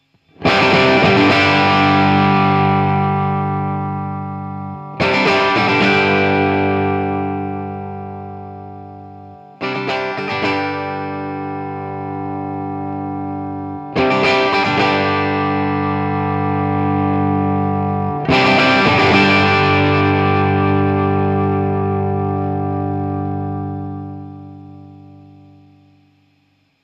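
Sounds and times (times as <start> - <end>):
Electro Harmonix 5MM Volume Drive pedal: 0.0 - 26.0.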